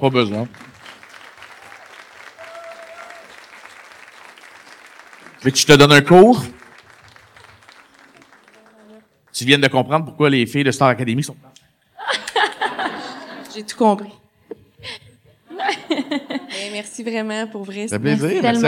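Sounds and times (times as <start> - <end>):
speech: 0.0 - 0.7, 5.4 - 6.6, 9.4 - 11.6, 13.6 - 14.2, 15.7 - 18.6
audience applause: 0.0 - 9.5
laughter: 12.0 - 13.7, 15.5 - 16.7.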